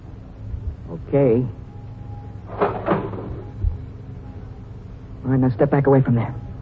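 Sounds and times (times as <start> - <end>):
faint steady hum: 0.0 - 6.5
speech: 0.9 - 1.6, 5.3 - 6.4
cash register drawer opening: 2.5 - 3.6.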